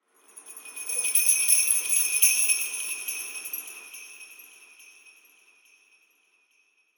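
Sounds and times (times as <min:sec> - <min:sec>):
Christmas song: 0:00.3 - 0:05.6.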